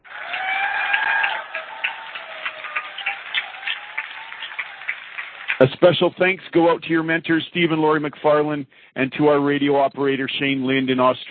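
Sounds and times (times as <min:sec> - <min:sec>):
audience round of applause: 0:00.0 - 0:06.4
speech: 0:05.6 - 0:11.2.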